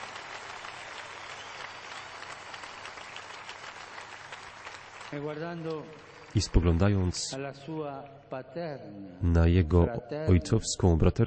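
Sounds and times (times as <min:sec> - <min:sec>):
audience applause: 0:00.0 - 0:07.3
speech: 0:05.1 - 0:11.2.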